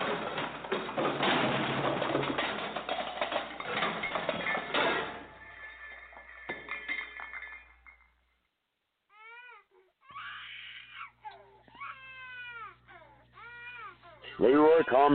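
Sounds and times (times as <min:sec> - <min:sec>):
pile of dishes crashing and glass breaking: 0:00.0 - 0:08.3.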